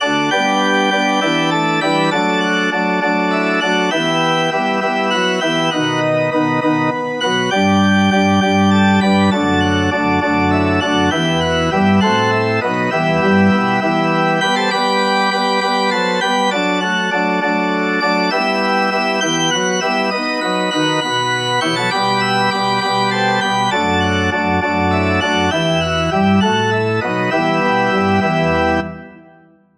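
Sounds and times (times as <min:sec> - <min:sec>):
organ: 0:00.0 - 0:29.6.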